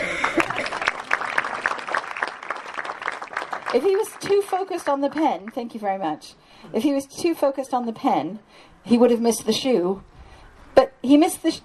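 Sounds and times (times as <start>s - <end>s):
audience applause: 0.0s - 5.4s
speech: 3.7s - 10.1s, 10.8s - 11.6s.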